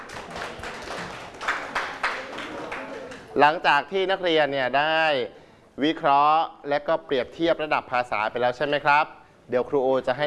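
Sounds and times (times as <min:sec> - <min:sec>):
students clapping: 0:00.0 - 0:03.4
speech: 0:03.4 - 0:10.2.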